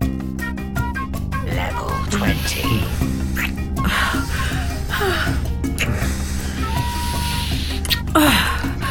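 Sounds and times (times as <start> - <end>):
steady tonal background: 0.1 - 8.8
speech: 2.1 - 3.1
simulated heavy breathing from a half-human game character: 2.3 - 8.8.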